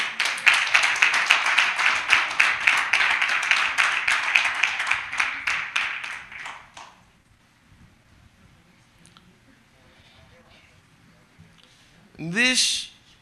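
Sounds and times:
audience clapping to welcome a woman onto the stage: 0.0s - 7.0s
speech: 12.5s - 12.9s.

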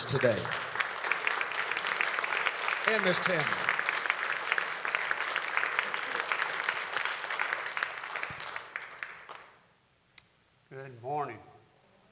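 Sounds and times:
church congregation applauding at a Sunday service to welcome the bishop: 0.0s - 9.6s
speech: 0.1s - 0.7s, 2.9s - 3.7s.

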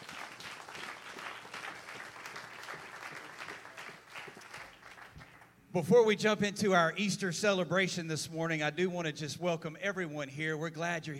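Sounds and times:
congregation applauding at an Easter church service: 0.0s - 5.6s
speech: 5.7s - 11.1s.

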